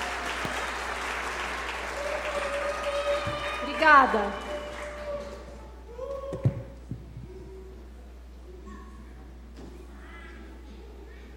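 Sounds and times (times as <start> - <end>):
crowd applause: 0.0 - 5.7
speech: 3.8 - 4.4.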